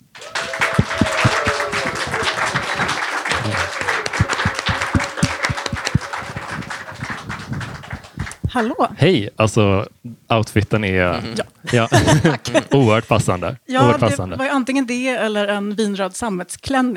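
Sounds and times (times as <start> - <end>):
audience applause: 0.1 - 8.8
laughter: 0.2 - 8.6, 11.1 - 14.4
speech: 8.6 - 16.9.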